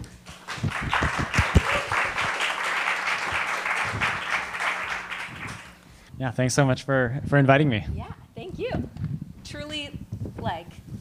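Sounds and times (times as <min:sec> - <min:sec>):
audience applause welcoming two speakers at an AI talk: 0:00.3 - 0:05.8
speech: 0:06.2 - 0:08.9.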